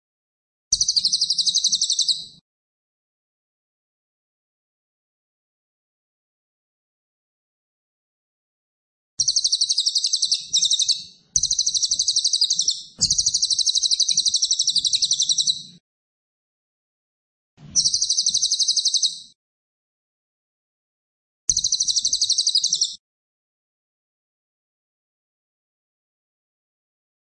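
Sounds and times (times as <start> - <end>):
cililin singing fast shrill pulsed trills: 0.8 - 2.2, 9.2 - 15.8, 17.8 - 19.4, 21.5 - 23.0.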